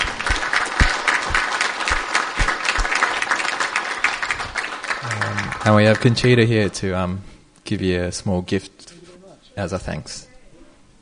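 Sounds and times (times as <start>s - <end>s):
audience applause: 0.0s - 6.4s
speech: 5.6s - 8.8s, 9.6s - 10.3s.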